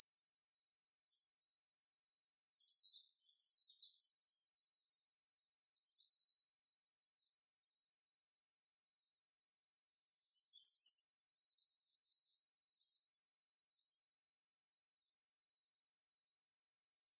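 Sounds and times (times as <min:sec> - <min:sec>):
spotted flycatcher: 0:00.0 - 0:17.1.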